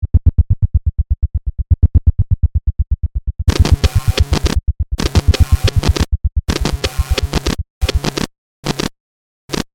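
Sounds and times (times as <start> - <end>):
heartbeat: 0.0 - 8.1
robotic distorted hits: 3.2 - 8.2.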